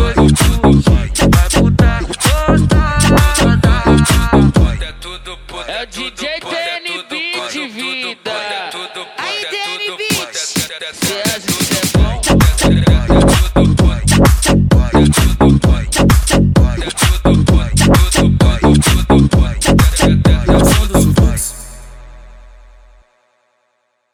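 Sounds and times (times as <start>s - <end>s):
music beat: 0.0s - 4.8s, 10.1s - 22.0s.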